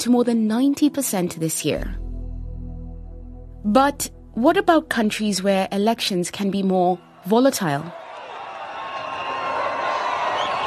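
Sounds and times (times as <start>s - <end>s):
speech: 0.0s - 2.1s, 3.6s - 8.0s
large noisy crowds cheering at an election rally in Uganda: 7.0s - 10.6s.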